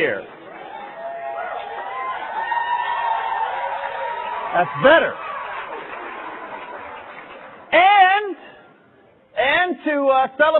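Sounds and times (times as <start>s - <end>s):
speech: 0.0s - 0.4s, 4.5s - 5.3s, 9.8s - 10.5s
audience applauding: 0.2s - 7.8s.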